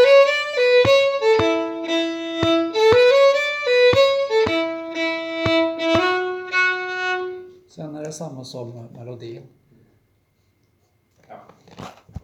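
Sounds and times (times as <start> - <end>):
two-voice polska: 0.0 - 7.5.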